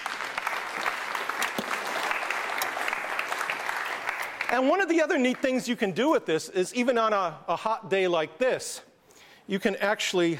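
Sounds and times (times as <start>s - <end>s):
audience applause: 0.0s - 5.4s
speech: 4.5s - 8.9s, 9.5s - 10.3s.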